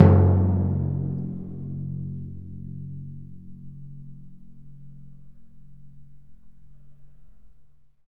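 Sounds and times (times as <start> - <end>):
orchestral percussion drums: 0.0 - 1.7.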